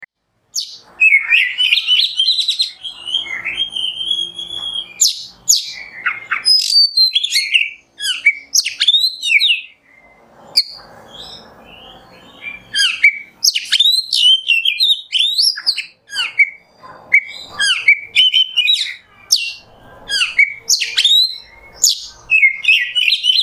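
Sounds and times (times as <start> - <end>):
Oriental magpie-robin singing: 0.5 - 23.4.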